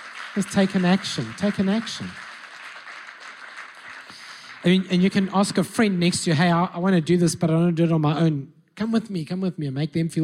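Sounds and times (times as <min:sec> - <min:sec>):
church audience clapping: 0:00.0 - 0:06.3
speech: 0:00.4 - 0:02.2, 0:04.6 - 0:10.2.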